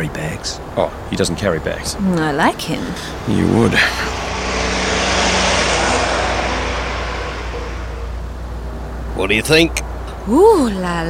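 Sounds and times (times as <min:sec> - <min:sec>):
speech: 0:00.0 - 0:04.3, 0:09.2 - 0:11.0
1957 Armstrong Siddeley Sapphire 346 3400 cc car engine and road roar: 0:03.0 - 0:09.0.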